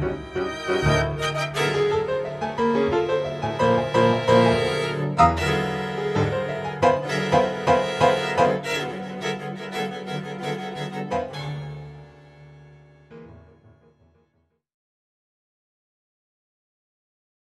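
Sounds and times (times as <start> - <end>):
piano quintet playing: 0.0 - 14.0.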